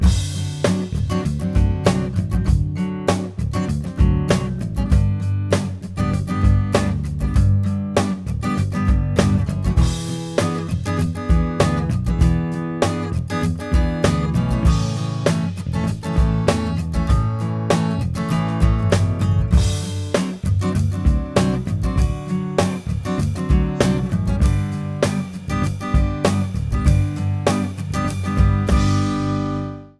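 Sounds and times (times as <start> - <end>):
slinky groovy music loop without keys: 0.0 - 29.6.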